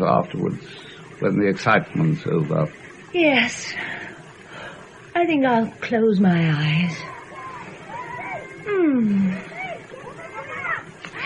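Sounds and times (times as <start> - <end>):
speech: 0.0 - 4.0, 5.2 - 7.2, 8.7 - 9.5
children yelling while playing: 6.9 - 11.2.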